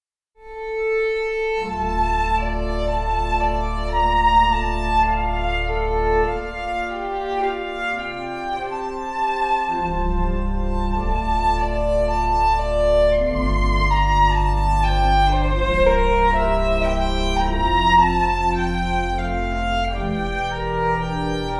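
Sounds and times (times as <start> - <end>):
violin: 0.4 - 21.5.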